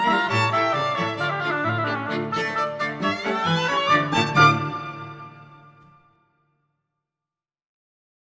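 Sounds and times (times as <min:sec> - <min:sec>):
polka music: 0:00.0 - 0:05.7.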